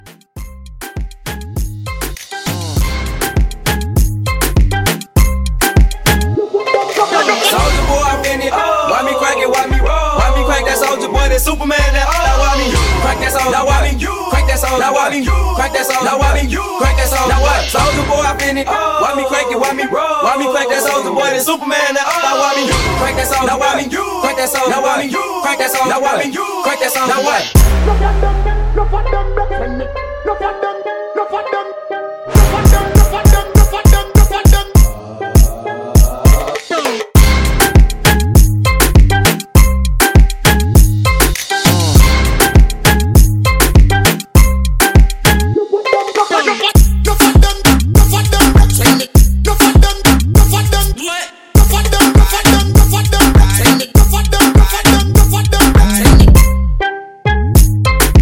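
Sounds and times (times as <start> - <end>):
moombahton intro: 0.0 - 58.2.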